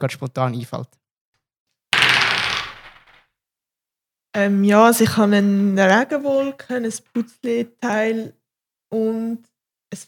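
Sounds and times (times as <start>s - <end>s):
speech: 0.0s - 1.0s, 4.4s - 10.0s
dice rolling: 2.0s - 3.2s.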